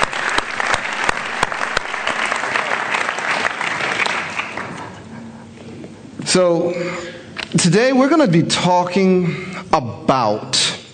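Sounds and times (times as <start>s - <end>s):
audience hand clap applause: 0.0s - 5.1s
speech: 6.3s - 10.8s.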